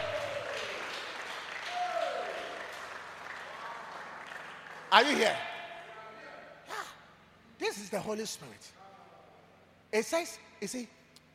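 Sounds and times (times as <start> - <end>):
audience clapping: 0.0 - 5.4
speech: 4.9 - 5.5, 7.7 - 8.8, 9.9 - 11.3.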